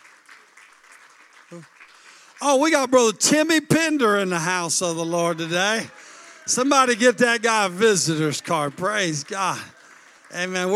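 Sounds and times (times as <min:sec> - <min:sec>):
audience hand clapping: 0:00.0 - 0:10.7
speech: 0:01.5 - 0:01.8, 0:02.4 - 0:10.7.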